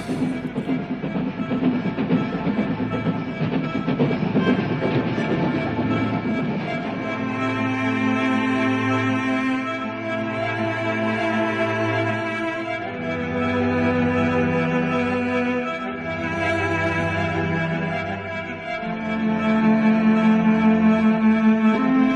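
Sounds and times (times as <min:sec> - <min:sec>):
rail clatter of a local passenger train: 0:00.0 - 0:07.6
local passenger train running: 0:00.0 - 0:22.1.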